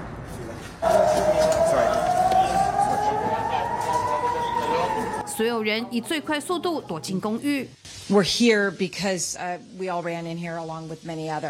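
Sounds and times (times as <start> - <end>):
air raid siren wailing: 0.8 - 7.6
speech: 5.4 - 11.4.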